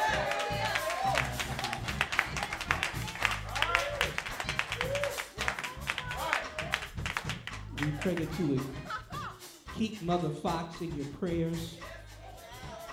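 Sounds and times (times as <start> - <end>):
audience hand clapping: 0.0 - 9.0
laughter: 7.8 - 9.6
speech: 8.0 - 8.9, 9.8 - 11.8.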